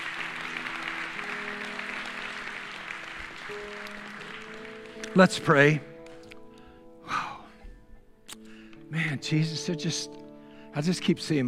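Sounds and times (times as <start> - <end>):
audience clapping hands: 0.0 - 6.4
speech: 3.5 - 4.1, 5.2 - 5.9, 8.9 - 10.2, 10.8 - 11.4.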